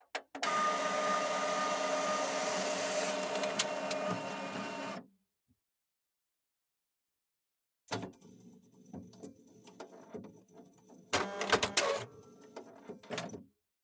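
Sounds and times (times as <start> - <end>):
printer: 0.2 - 5.0, 8.8 - 13.3.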